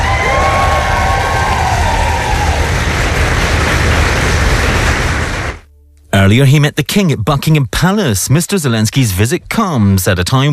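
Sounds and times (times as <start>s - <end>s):
Foreign Office staff cheering Volodymyr Zelensky's arrival: 0.0s - 3.4s
clapping: 0.0s - 5.6s
speech: 6.3s - 10.5s.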